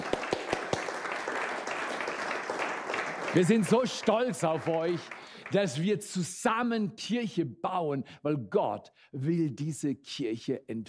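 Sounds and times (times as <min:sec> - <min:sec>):
audience applause: 0:00.0 - 0:05.8
speech: 0:03.3 - 0:10.8.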